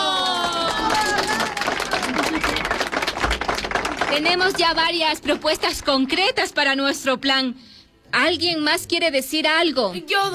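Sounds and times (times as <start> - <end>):
voices whooping and cheering: 0.0 - 2.9
group applause: 0.0 - 6.4
speech: 4.2 - 10.3.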